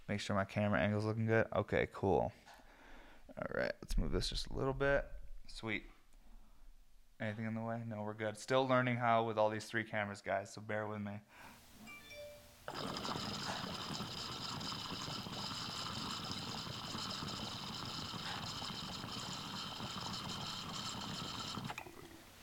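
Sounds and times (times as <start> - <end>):
speech: 0.1 - 2.5, 3.4 - 5.9, 7.2 - 11.6, 12.7 - 13.3
small engine running with deep chug and whispery purr: 12.7 - 21.8.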